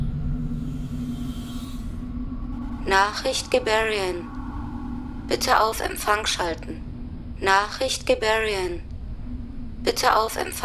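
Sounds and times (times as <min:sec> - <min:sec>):
computer activating electronic hum in a Solaris radio drama: 0:00.0 - 0:10.6
faint higher whine of activating computer: 0:00.0 - 0:10.6
speech: 0:02.8 - 0:04.4, 0:05.3 - 0:06.8, 0:07.4 - 0:08.9, 0:09.8 - 0:10.6.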